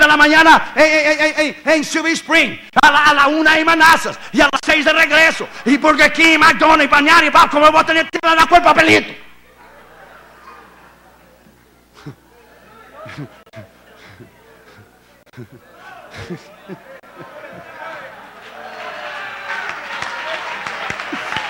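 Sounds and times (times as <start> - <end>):
speech: 0.2 - 9.2, 13.2 - 13.7, 16.2 - 16.8
laughter: 9.4 - 21.4
audience applause: 15.9 - 21.4.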